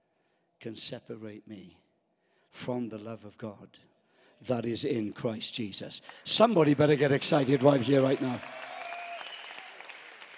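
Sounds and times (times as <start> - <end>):
speech: 0.6 - 1.8, 2.5 - 8.7
audience clapping: 6.0 - 10.3.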